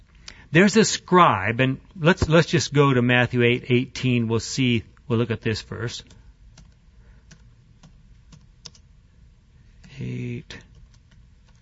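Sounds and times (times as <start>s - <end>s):
speech: 0.5s - 6.2s, 10.0s - 10.7s
typing on a computer keyboard: 6.1s - 8.9s, 9.8s - 11.6s.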